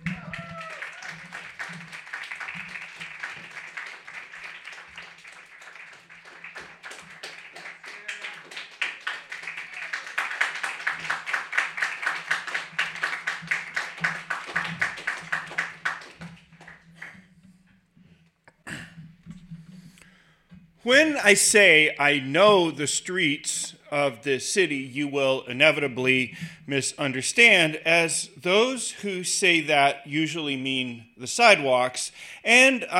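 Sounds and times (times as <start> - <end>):
audience applause for a poet: 0.0 - 17.2
speech: 20.9 - 32.9.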